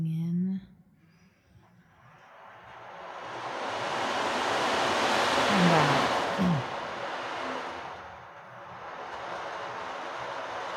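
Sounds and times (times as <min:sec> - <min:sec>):
ocean drum played gently: 0:02.4 - 0:10.7.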